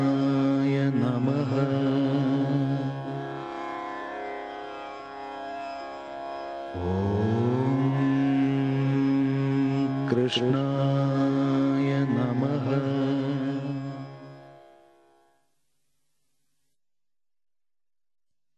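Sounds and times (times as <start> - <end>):
Hindu devotional chant: 0.0 - 3.6, 6.7 - 14.4.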